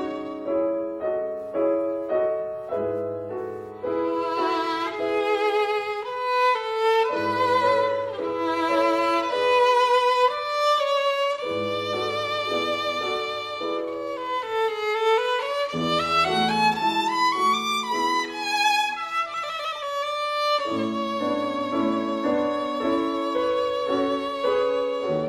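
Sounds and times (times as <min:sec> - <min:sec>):
piano: 0:00.0 - 0:25.2
violin: 0:00.0 - 0:25.2.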